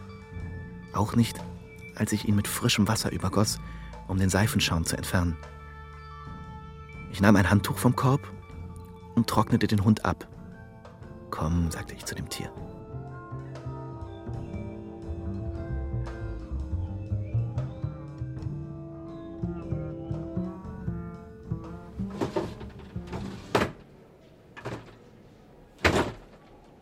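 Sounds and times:
soft steady music: 0.0s - 26.2s
speech: 1.0s - 5.6s, 7.1s - 8.4s, 9.2s - 10.3s, 11.4s - 12.8s
locked drawers tugged and rattled: 21.6s - 26.7s.

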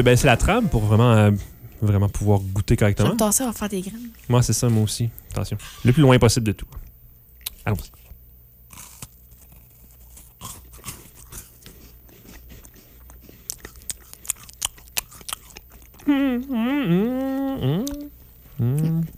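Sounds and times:
speech: 0.0s - 6.9s, 7.6s - 8.0s, 16.1s - 19.1s
chewing a chocolate shortbread biscuit: 8.7s - 16.1s.

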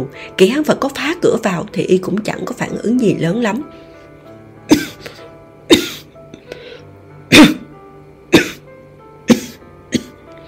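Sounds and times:
speech: 0.0s - 3.8s, 7.3s - 7.6s
dying person coughing repeatedly on a bed: 4.7s - 5.1s, 5.7s - 6.1s, 7.3s - 7.7s, 8.3s - 8.6s, 9.3s - 10.2s.

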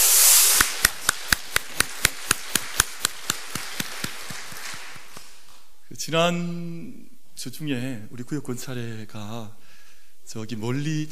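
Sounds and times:
audience applause: 0.6s - 5.4s
speech: 6.1s - 9.6s, 10.3s - 11.0s.

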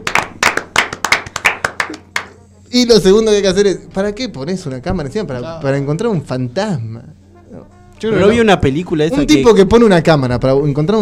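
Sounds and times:
handclaps from a small group: 0.0s - 2.4s
speech: 1.9s - 2.1s, 2.7s - 10.9s.

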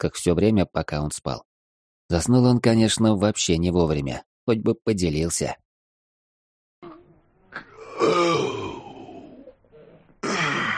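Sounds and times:
speech: 0.0s - 1.5s, 2.1s - 5.6s
loud yawn: 6.9s - 10.7s.

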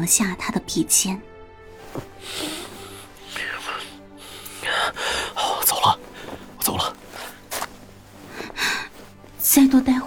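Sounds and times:
speech: 0.0s - 1.3s, 2.0s - 2.5s, 9.5s - 10.0s
heavy breathing: 1.8s - 7.5s.

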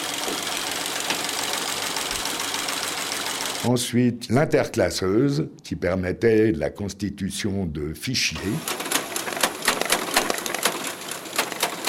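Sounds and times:
punched card sorting machine (trieuse) running: 0.0s - 3.7s, 8.4s - 11.8s
speech: 3.6s - 8.8s.

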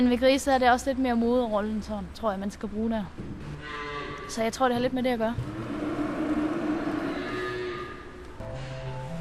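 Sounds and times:
speech: 0.0s - 5.6s
cows mooing in a barn before milking: 3.6s - 4.4s, 5.4s - 8.3s.

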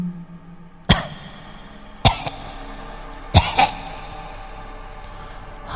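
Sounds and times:
harsh hacking coughs: 0.9s - 2.6s, 3.2s - 4.3s.

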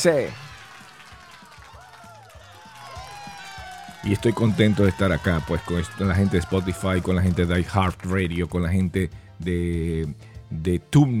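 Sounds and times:
speech: 0.0s - 0.4s, 4.0s - 11.1s
applause sound effect: 0.0s - 8.2s.

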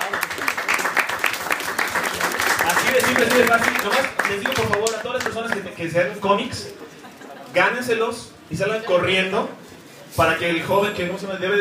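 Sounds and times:
audience applause at a comic book giveaway event: 0.0s - 5.6s
speech: 3.2s - 6.8s, 7.5s - 9.6s, 10.2s - 11.5s.

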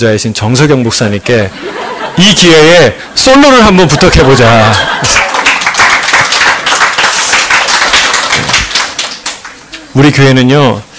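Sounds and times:
speech: 0.0s - 5.3s, 10.0s - 10.9s
laughter: 1.5s - 3.1s, 3.7s - 5.6s
congregation applauding at a Sunday church worship service: 4.7s - 9.7s.

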